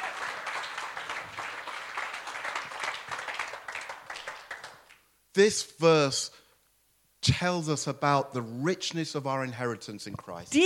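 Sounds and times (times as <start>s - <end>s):
audience applause: 0.0s - 5.0s
speech: 5.4s - 6.4s, 7.2s - 10.6s.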